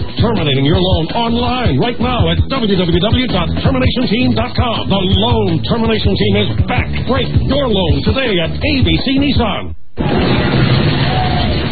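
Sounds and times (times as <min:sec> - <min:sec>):
speech: 0:00.2 - 0:10.4
riders shrieking on the roller coaster and Big Shot at the Stratosphere, Las Vegas: 0:10.9 - 0:11.7.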